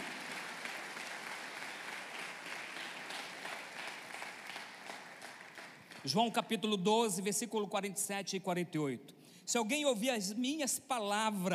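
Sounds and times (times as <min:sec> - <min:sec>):
audience applause: 0:00.0 - 0:06.1
speech: 0:06.0 - 0:11.5.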